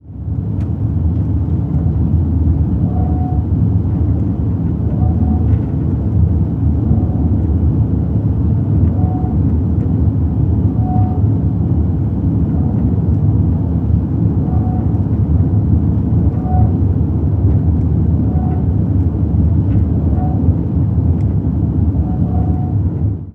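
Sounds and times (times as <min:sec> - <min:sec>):
ship engines: 0:00.0 - 0:23.3.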